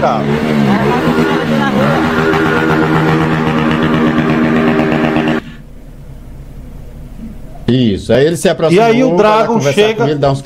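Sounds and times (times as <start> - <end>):
speech: 0.0 - 2.4, 7.7 - 10.4
loud motorcycle exhaust roar: 0.0 - 7.5.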